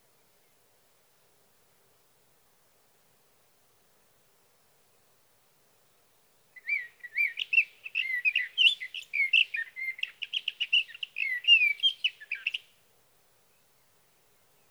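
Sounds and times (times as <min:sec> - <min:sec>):
sage thrasher song: 0:06.6 - 0:12.8.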